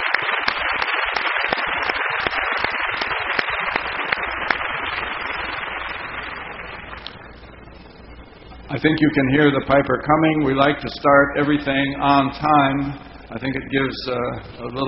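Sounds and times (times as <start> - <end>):
audience applause: 0.0 - 7.1
speech: 8.8 - 14.8.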